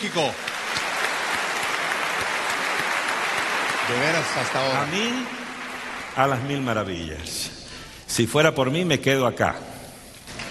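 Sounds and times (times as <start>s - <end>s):
speech: 0.0s - 0.5s, 3.9s - 5.4s, 6.2s - 9.7s
audience applause: 0.0s - 7.0s.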